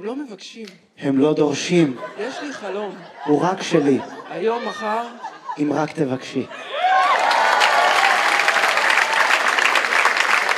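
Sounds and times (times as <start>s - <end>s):
speech: 0.0s - 6.8s
laughter: 1.1s - 7.8s
audience applause: 6.7s - 10.5s.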